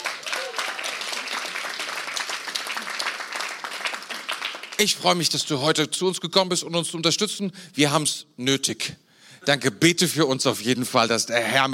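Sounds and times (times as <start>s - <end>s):
audience applause: 0.0s - 5.0s
speech: 4.8s - 11.7s.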